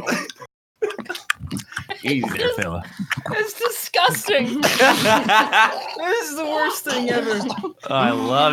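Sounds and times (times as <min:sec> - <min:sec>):
horse chewing tobacco: 0:00.8 - 0:06.2
laughter: 0:01.9 - 0:08.5
speech: 0:02.0 - 0:08.5.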